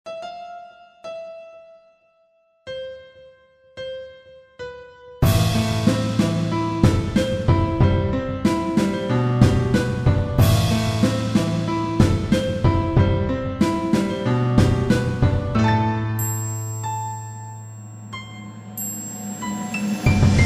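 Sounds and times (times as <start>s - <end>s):
backing track without piano: 0.0s - 20.4s.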